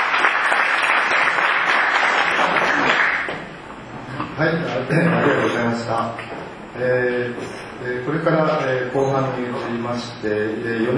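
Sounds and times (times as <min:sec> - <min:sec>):
applause: 0:00.0 - 0:03.5
speech: 0:04.4 - 0:10.9.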